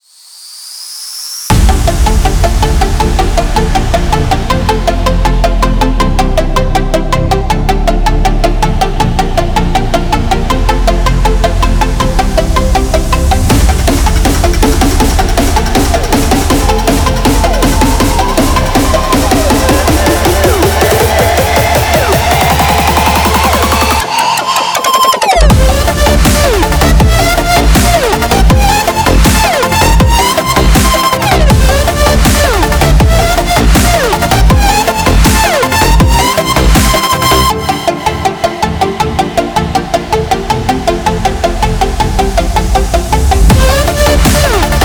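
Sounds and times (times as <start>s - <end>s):
dubstep EDM track: 1.5s - 44.8s.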